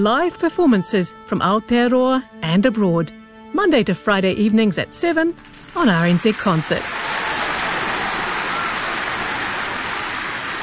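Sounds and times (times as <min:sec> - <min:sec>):
speech: 0:00.0 - 0:07.1
audience applauding: 0:05.4 - 0:10.6.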